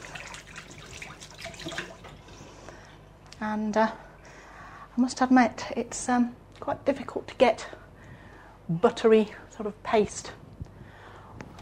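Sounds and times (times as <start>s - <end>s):
running tap washing buttery hands: 0.0s - 2.3s
speech: 3.4s - 4.1s, 5.0s - 7.8s, 8.7s - 10.4s.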